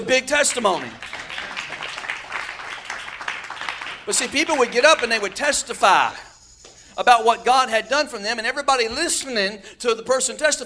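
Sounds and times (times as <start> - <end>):
speech: 0.0 - 1.2, 4.1 - 6.3, 7.0 - 10.6
crowd clapping: 0.3 - 5.8.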